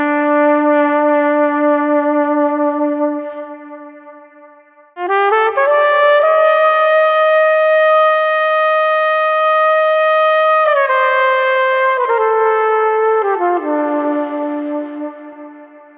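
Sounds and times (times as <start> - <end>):
heavyhearted street trumpet playing: 0.0 - 15.9.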